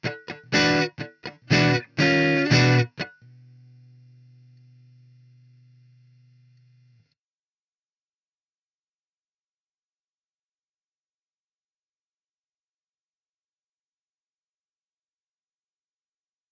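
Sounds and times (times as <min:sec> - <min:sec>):
Vox amp clean tone in an amp room: 0:00.0 - 0:07.1.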